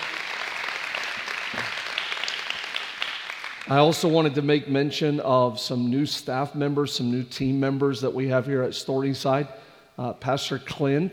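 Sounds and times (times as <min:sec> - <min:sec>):
church audience at Storyside applauding: 0:00.0 - 0:04.0
speech: 0:03.7 - 0:11.1.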